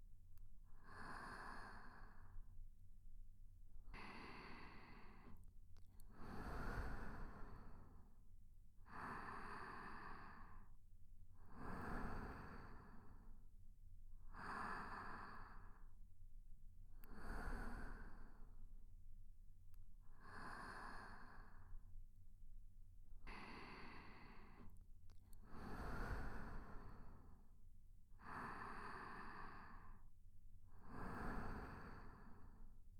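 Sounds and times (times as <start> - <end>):
sleep breathing: 0.7 - 2.6, 3.9 - 8.2, 8.8 - 13.5, 14.2 - 16.0, 17.0 - 18.7, 20.2 - 22.0, 23.2 - 27.6, 28.2 - 32.9.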